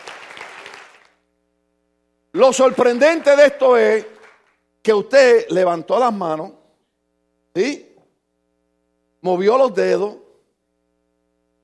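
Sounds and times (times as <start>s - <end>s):
applause: 0.0s - 1.3s, 2.6s - 4.6s
speech: 2.4s - 4.2s, 4.8s - 6.6s, 7.6s - 7.8s, 9.2s - 10.2s.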